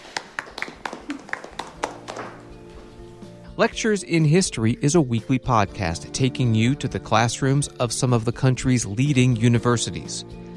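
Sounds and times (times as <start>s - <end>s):
class clapping: 0.0s - 2.6s
speech: 3.6s - 10.5s.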